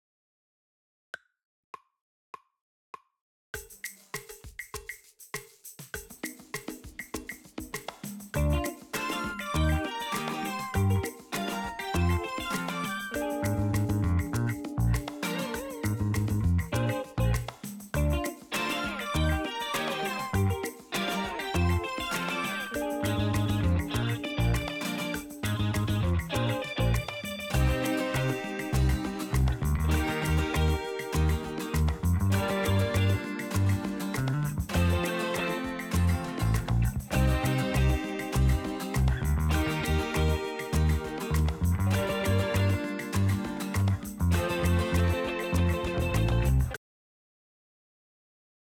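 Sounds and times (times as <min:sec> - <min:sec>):
music without drums: 0:03.6 - 0:46.8.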